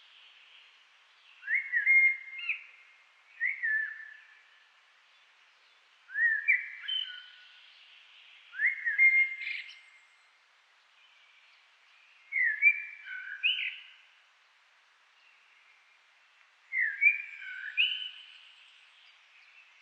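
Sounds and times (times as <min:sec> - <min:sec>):
common blackbird Turdus merula singing: 0:01.2 - 0:04.6, 0:05.6 - 0:10.2, 0:11.0 - 0:14.0, 0:16.7 - 0:19.8.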